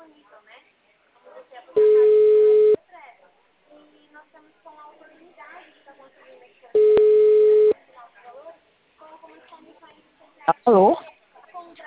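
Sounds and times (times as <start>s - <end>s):
telephone busy signal after a dropped call: 1.8s - 2.8s, 6.8s - 7.8s
speech: 10.6s - 11.0s.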